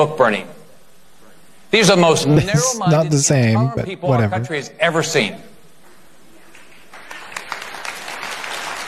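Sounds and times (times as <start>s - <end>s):
speech: 0.0s - 0.6s, 1.7s - 5.5s
smattering of applause: 6.6s - 8.8s.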